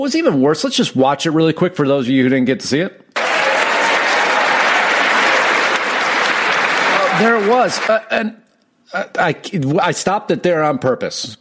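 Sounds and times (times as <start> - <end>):
speech: 0.0 - 3.0, 7.2 - 11.3
clapping: 3.2 - 8.0.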